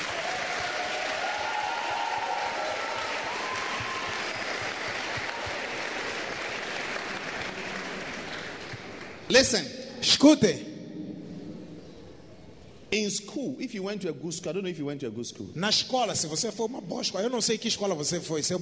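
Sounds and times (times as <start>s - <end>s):
church congregation applauding: 0.0s - 9.6s
speech: 9.3s - 10.7s, 13.0s - 18.5s.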